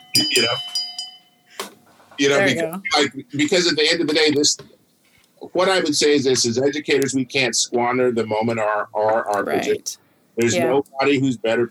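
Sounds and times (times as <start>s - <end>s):
shame bell ringing: 0.0s - 1.6s
speech: 0.2s - 0.8s, 2.2s - 4.8s, 5.4s - 11.6s
voice bursts: 2.2s - 3.3s, 10.4s - 10.8s.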